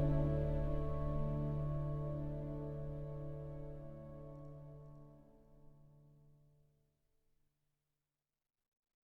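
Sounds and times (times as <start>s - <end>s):
cinematic beauty music: 0.0s - 5.0s.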